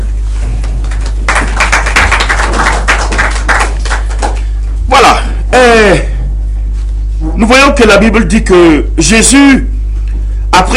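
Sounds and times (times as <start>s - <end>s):
low constant hum: 0.0s - 10.7s
crowd applauding: 0.6s - 4.5s
speech: 7.5s - 9.8s, 10.6s - 10.7s.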